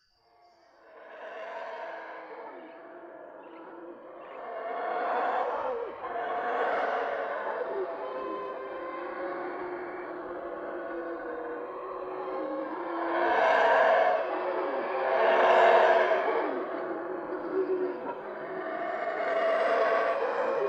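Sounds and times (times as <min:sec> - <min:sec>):
howler calls: 0:00.8 - 0:20.6.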